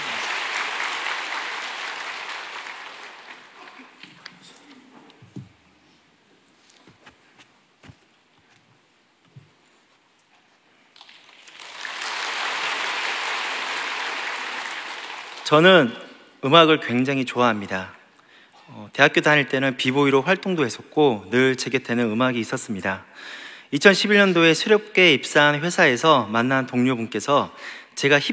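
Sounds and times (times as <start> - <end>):
audience applause: 0.0 - 5.2, 11.0 - 16.4
speech: 15.5 - 18.0, 18.9 - 28.3.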